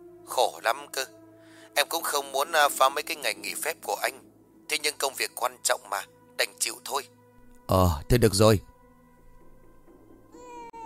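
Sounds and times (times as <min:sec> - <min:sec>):
speech: 0:00.3 - 0:01.2, 0:01.8 - 0:08.7
baby crying: 0:10.3 - 0:10.8.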